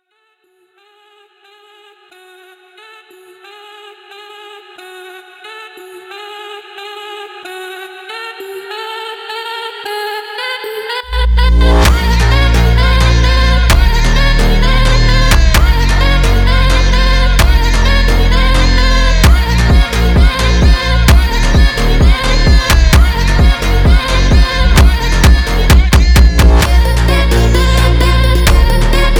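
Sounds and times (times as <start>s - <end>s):
phonk funk music: 11.2s - 29.1s.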